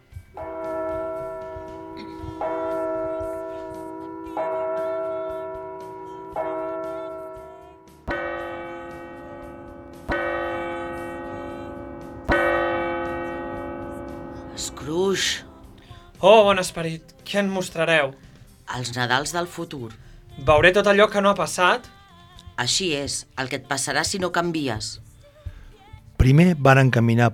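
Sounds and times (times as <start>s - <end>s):
clock striking the hour with slow resonant bell chimes: 0.0s - 16.8s
speech: 16.2s - 21.9s, 22.6s - 25.1s, 26.2s - 27.3s.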